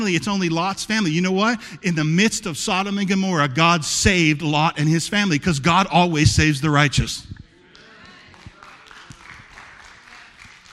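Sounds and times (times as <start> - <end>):
speech: 0.0 - 7.4
small audience clapping: 7.6 - 10.7.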